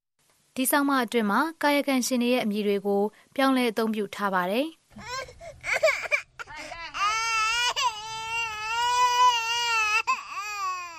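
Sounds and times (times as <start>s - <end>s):
speech: 0.6s - 6.0s
small child wailing in a village: 5.0s - 10.9s.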